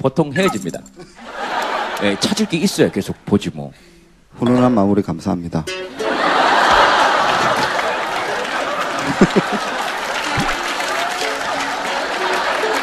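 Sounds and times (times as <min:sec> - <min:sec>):
speech: 0:00.0 - 0:01.4, 0:02.0 - 0:06.0, 0:09.2 - 0:09.8
laughter: 0:01.0 - 0:03.1, 0:05.9 - 0:12.8
audience applause: 0:06.3 - 0:12.8.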